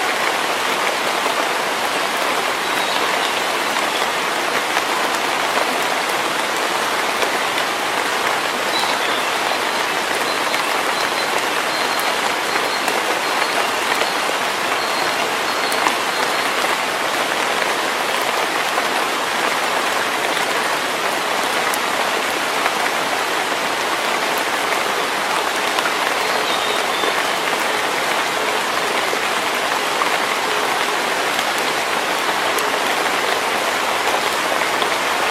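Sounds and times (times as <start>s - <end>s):
rain falling in a forest in early summer: 0.0s - 35.3s.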